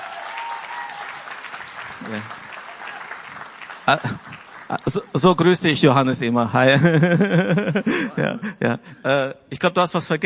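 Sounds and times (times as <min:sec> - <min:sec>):
audience applause: 0:00.0 - 0:05.5
speech: 0:02.1 - 0:02.4, 0:03.9 - 0:04.3, 0:04.9 - 0:10.2
laughter: 0:06.7 - 0:08.9.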